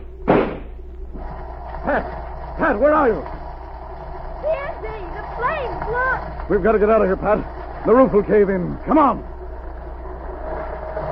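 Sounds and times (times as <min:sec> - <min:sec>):
gunshot blasting locked door open: 0:00.2 - 0:00.8
speech: 0:01.9 - 0:03.4, 0:04.4 - 0:09.3.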